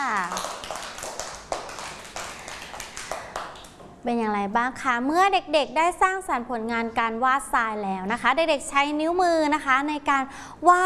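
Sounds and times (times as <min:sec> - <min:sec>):
children clapping: 0:00.0 - 0:03.8
speech: 0:04.0 - 0:10.8.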